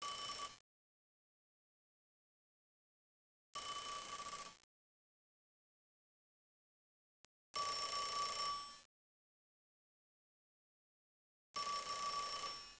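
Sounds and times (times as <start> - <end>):
telephone: 0.0 - 0.6, 3.6 - 4.7, 7.6 - 8.9, 11.6 - 12.7.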